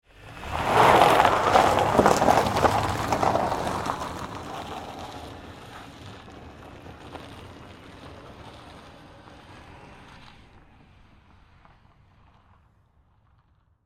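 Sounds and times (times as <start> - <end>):
Saturn Vue pulling away on snow: 0.1 - 13.6
ice cracking: 0.3 - 9.8.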